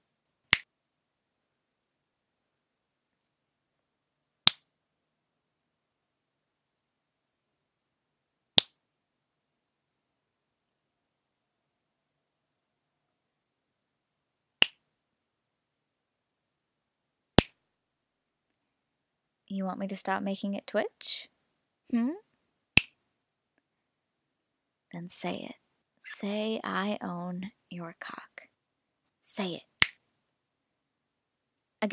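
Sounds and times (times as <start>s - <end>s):
finger snaps: 17.4s - 17.6s
speech: 19.5s - 21.3s, 21.9s - 22.3s, 24.9s - 28.5s, 29.2s - 29.7s.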